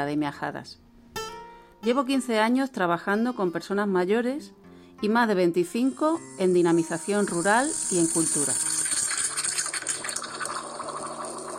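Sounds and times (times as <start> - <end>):
speech: 0.0 - 0.8, 1.8 - 8.8
coffee maker brewing with hissing and gurgling: 6.5 - 11.5.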